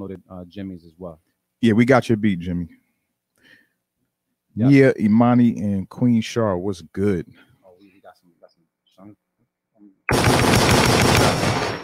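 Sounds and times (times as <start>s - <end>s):
speech: 0.0s - 2.8s, 4.6s - 7.5s, 9.0s - 9.2s
automatic gunfire sound effect: 10.1s - 11.8s.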